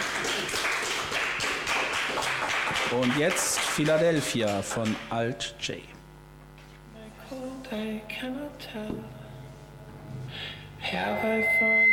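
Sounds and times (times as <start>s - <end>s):
audience applause: 0.0s - 5.1s
speech: 2.9s - 6.0s, 7.3s - 9.2s, 10.3s - 11.9s.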